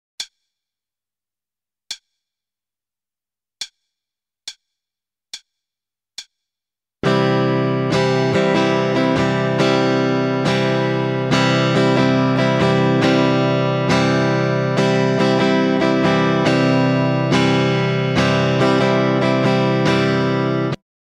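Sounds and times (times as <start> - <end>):
starter guitar rhythm: 7.0 - 20.8.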